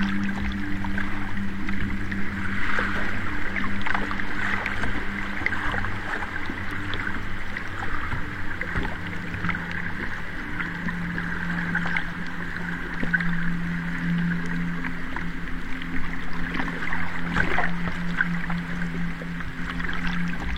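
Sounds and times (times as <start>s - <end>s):
low constant hum: 0.0s - 20.5s
river water flowing: 0.0s - 20.5s.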